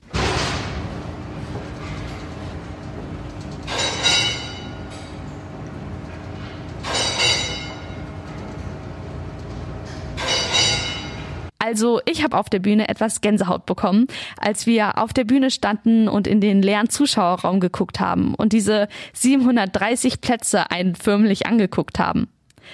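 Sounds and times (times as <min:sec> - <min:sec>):
theatre iron safety curtain being raised with mechanical rumble and whir: 0:00.1 - 0:11.5
speech: 0:11.7 - 0:22.7.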